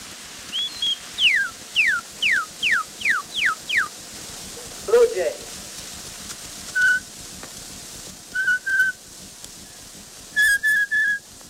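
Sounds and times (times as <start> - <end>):
steady hiss of old recording: 0.0 - 11.4
Kentucky cardinal whistling on old recording: 0.5 - 3.9, 6.7 - 7.1, 8.3 - 9.0, 10.3 - 11.2.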